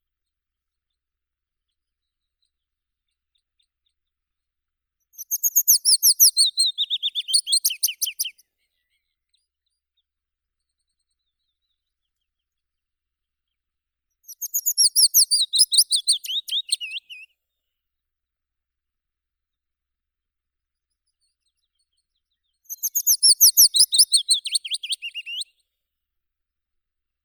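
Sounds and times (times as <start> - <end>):
Phylloscopus trochilus willow warbler singing: 5.2 - 8.4, 14.3 - 17.3, 22.7 - 25.5.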